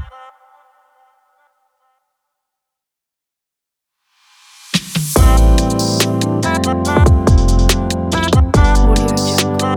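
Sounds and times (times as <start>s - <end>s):
stylish modern fashion R&B drum kit: 4.6s - 9.7s.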